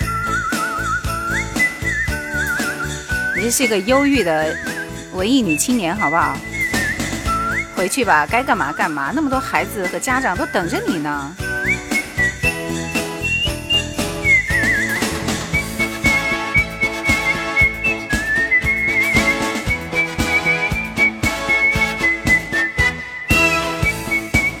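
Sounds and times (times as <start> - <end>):
instrumental backing with steady beat and bass: 0.0 - 24.5
whistled song melody: 0.0 - 24.5
speech: 3.4 - 6.6, 7.8 - 11.9.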